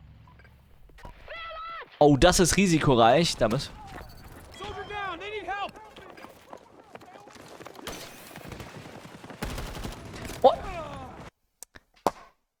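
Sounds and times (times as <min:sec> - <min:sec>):
speech: 0:02.0 - 0:03.8
video game gunfire: 0:03.1 - 0:11.3.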